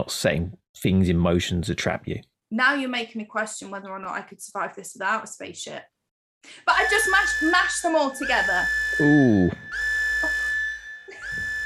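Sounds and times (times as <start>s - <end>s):
speech: 0.0s - 9.6s
loud high-pitched siren blasts: 6.7s - 11.6s.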